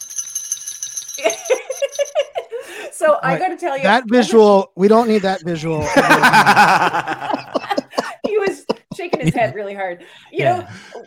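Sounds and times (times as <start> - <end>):
bells being shaken and rung: 0.0 - 2.3
speech: 1.2 - 7.4, 9.2 - 11.0
laughter: 4.9 - 9.6, 10.4 - 11.0.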